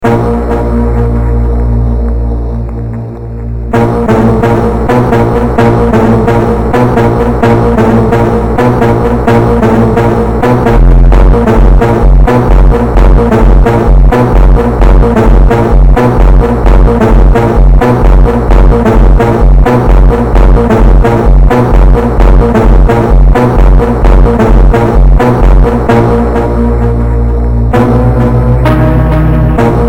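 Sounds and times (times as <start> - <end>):
phonk montagem music: 0.0 - 29.8.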